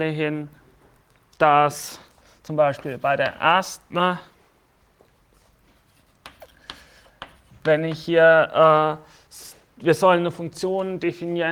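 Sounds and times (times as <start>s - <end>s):
speech: 0.0s - 0.6s, 1.4s - 4.3s, 7.6s - 11.5s
handwriting strokes during a lecture: 5.3s - 8.2s.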